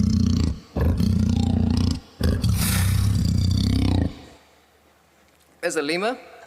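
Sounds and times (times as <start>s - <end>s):
leopard roar: 0.0s - 4.3s
speech: 5.6s - 6.3s.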